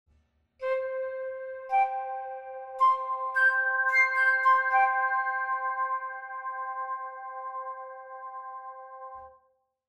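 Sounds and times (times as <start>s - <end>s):
flute effect: 0.6s - 9.2s.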